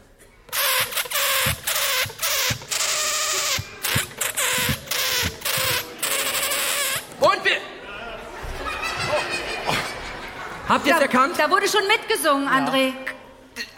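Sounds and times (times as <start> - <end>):
balloon squeaking a simple tune: 0.5 - 7.2
laughter: 8.2 - 11.7
speech: 10.7 - 13.1.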